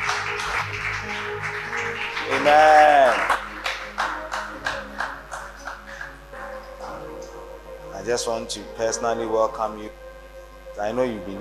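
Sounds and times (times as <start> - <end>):
church congregation clapping along in rhythm during worship: 0.0 - 9.9
speech: 2.4 - 3.3, 8.1 - 10.0, 10.8 - 11.4.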